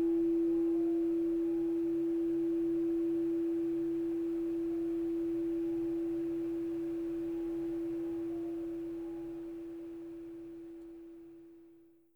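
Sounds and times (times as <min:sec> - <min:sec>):
6 inch crystal singing bowl tone in E plus 22 cents: 0:00.0 - 0:11.6.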